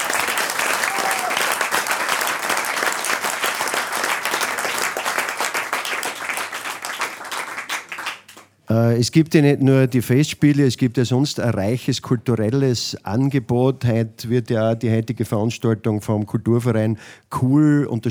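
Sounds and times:
audience applause: 0:00.0 - 0:08.5
speech: 0:08.8 - 0:18.0.

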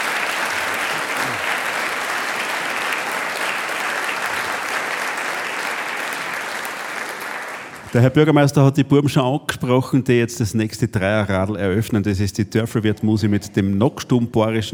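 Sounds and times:
audience applause: 0:00.0 - 0:08.3
speech: 0:07.9 - 0:14.7.

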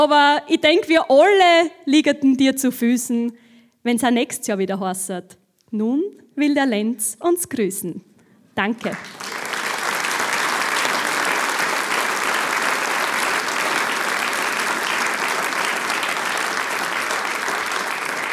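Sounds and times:
speech: 0:00.0 - 0:09.4
person clapping: 0:08.8 - 0:18.3.

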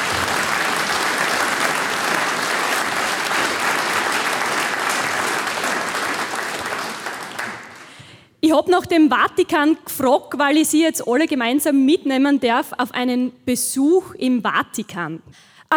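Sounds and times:
audience applause: 0:00.0 - 0:08.1
speech: 0:08.4 - 0:15.7.

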